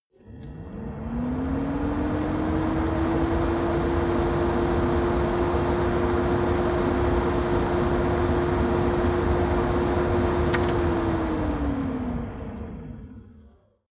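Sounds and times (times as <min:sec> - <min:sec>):
stove extractor fan on medium: 0:00.2 - 0:13.7.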